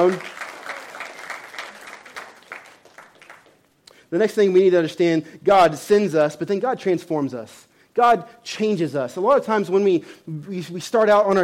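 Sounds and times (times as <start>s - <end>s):
speech: 0.0s - 0.3s, 4.1s - 11.4s
audience clapping: 0.0s - 3.8s.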